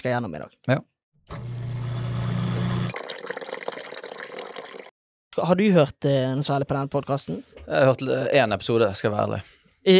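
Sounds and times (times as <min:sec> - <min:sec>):
speech: 0:00.0 - 0:01.5, 0:05.4 - 0:09.9
coffee poured into a cup: 0:01.4 - 0:04.9.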